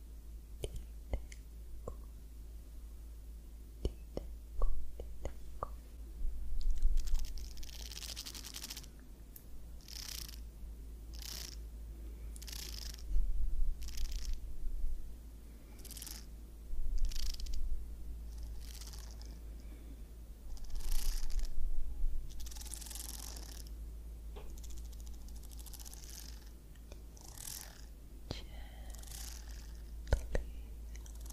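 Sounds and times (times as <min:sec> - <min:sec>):
low hum: 0:00.0 - 0:31.3
scalp massage scratching and rubbing strokes: 0:06.7 - 0:09.0, 0:09.8 - 0:10.5, 0:11.1 - 0:11.6, 0:12.4 - 0:14.4, 0:15.8 - 0:16.3, 0:17.0 - 0:17.7, 0:18.3 - 0:19.4, 0:20.5 - 0:21.6, 0:22.3 - 0:23.8, 0:24.6 - 0:26.6, 0:27.2 - 0:27.9, 0:28.9 - 0:29.9, 0:31.0 - 0:31.3.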